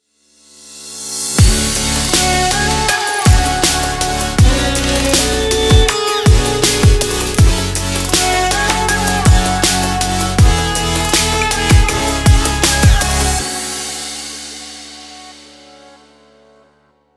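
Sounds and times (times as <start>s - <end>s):
Arabic future bass kit: 1.4s - 13.9s.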